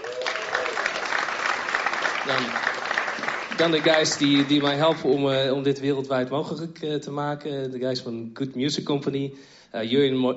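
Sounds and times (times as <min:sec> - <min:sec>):
person whooping: 0:00.0 - 0:01.0
audience applause: 0:00.0 - 0:05.1
speech: 0:02.3 - 0:02.8, 0:03.6 - 0:10.3.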